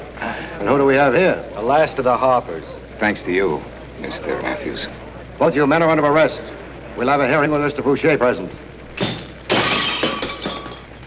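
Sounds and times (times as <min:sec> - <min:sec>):
speech: 0:00.6 - 0:08.6
tinkling shards of stage footlight glass: 0:09.0 - 0:10.9
stage footlight glass shattering: 0:09.0 - 0:11.0.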